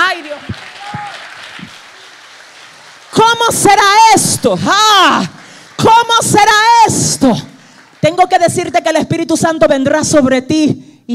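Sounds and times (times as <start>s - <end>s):
audience applause: 0.0s - 8.7s
speech: 3.5s - 11.1s.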